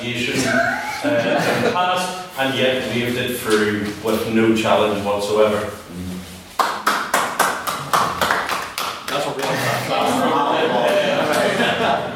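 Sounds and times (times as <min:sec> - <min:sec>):
speech: 0:00.0 - 0:06.1
laughter: 0:00.3 - 0:02.1, 0:09.3 - 0:12.1
audience applause: 0:06.7 - 0:10.4.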